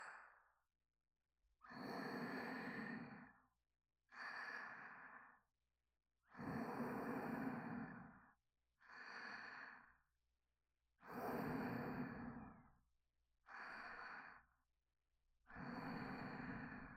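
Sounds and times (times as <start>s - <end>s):
person breathing in sleep: 0.0s - 0.5s, 1.6s - 5.5s, 6.2s - 10.1s, 11.0s - 12.8s, 13.4s - 14.6s, 15.5s - 16.9s.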